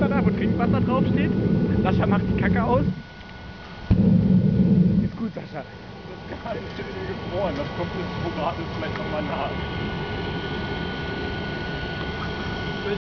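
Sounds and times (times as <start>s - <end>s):
blast furnace deflagration: 0.0s - 13.0s.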